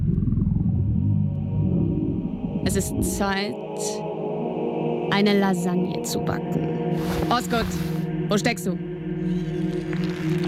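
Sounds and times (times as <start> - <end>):
stomach growling: 0.0 - 3.2, 9.2 - 10.4
speech: 2.6 - 4.1, 5.1 - 9.4.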